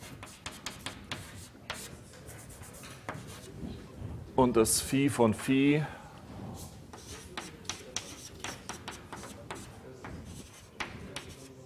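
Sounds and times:
chalk scratching on a blackboard: 0.0s - 3.6s, 6.6s - 11.6s
speech: 4.4s - 6.0s.

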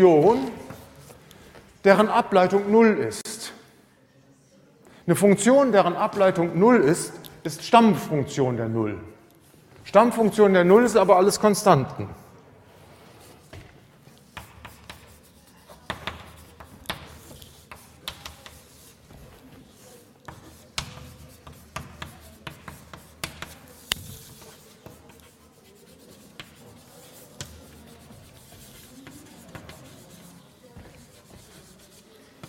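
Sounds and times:
speech: 0.0s - 0.6s, 1.8s - 3.2s, 5.1s - 9.1s, 9.9s - 12.2s
pen writing out a mathematics formula by hand: 14.2s - 32.4s.

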